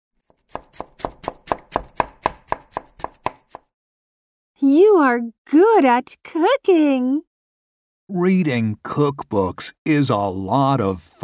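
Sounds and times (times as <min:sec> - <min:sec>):
knife chopping food on a cutting board: 0:00.2 - 0:03.7
speech: 0:04.7 - 0:07.3, 0:08.1 - 0:11.2.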